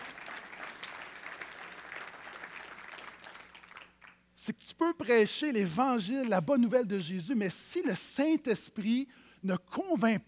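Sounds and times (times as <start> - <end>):
audience applause: 0.0 - 4.2
speech: 4.5 - 10.2.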